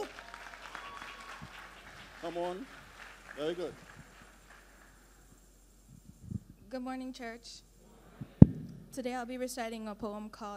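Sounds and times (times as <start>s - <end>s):
audience applauding: 0.0s - 5.2s
speech: 2.2s - 2.8s, 3.4s - 3.9s, 6.7s - 7.7s, 9.0s - 10.5s.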